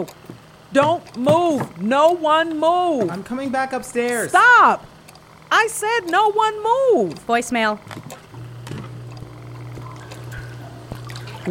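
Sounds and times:
speech: 0:00.0 - 0:04.9, 0:05.5 - 0:08.2
water dripping: 0:09.6 - 0:11.4.

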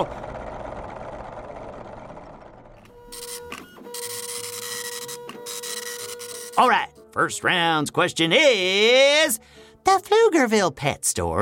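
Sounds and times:
speech: 0:00.0 - 0:00.2, 0:06.6 - 0:11.4
printer printing: 0:00.3 - 0:06.6.

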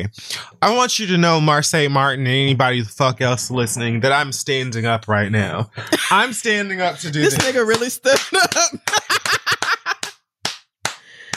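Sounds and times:
speech: 0:00.0 - 0:09.0
laughter: 0:05.4 - 0:10.1
person clapping hands: 0:07.2 - 0:11.3.

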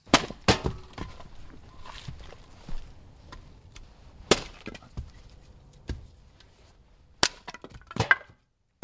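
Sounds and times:
chopping wood for a Finnish sauna fire: 0:00.0 - 0:01.3, 0:04.3 - 0:05.2, 0:07.2 - 0:08.8.

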